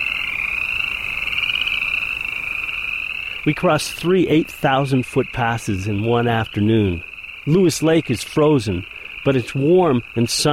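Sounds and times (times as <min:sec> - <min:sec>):
frogs croaking in a pool: 0:00.0 - 0:10.5
speech: 0:03.4 - 0:10.5.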